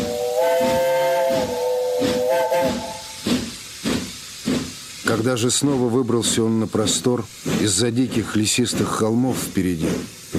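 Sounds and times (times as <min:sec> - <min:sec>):
steam locomotive whistle: 0:00.0 - 0:03.2
speech: 0:05.1 - 0:10.3.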